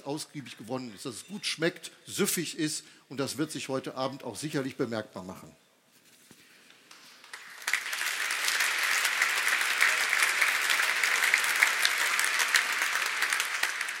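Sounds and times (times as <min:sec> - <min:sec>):
speech: 0:00.0 - 0:05.6
audience applause: 0:07.2 - 0:13.9.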